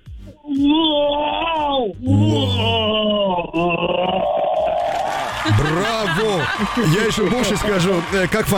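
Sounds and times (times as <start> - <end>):
speech: 0.3 - 1.2, 5.6 - 8.5
person imitating Chewbacca from Star Wars with throaty moaning howls: 0.4 - 5.0
laughter: 2.6 - 8.5.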